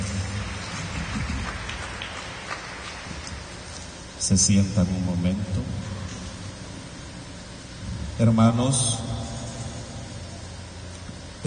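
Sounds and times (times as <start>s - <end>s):
audience clapping: 0.0s - 3.8s
speech: 4.2s - 5.8s, 8.2s - 9.1s.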